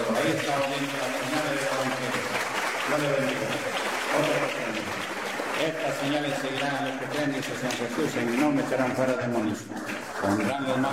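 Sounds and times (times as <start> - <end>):
church congregation applause at a healing service: 0.0 - 10.9
speech: 0.2 - 1.4, 2.9 - 10.9.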